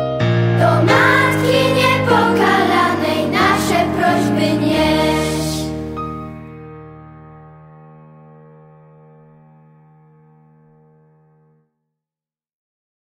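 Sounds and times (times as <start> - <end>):
hymn: 0.6 - 6.0.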